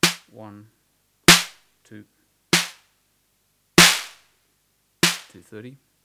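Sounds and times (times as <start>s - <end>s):
drum machine snare hits with noise turned up: 0.0s - 0.2s, 1.3s - 1.5s, 2.6s - 2.8s, 3.8s - 4.1s, 5.0s - 5.3s
speech: 0.4s - 0.8s, 1.9s - 2.2s, 5.3s - 5.9s.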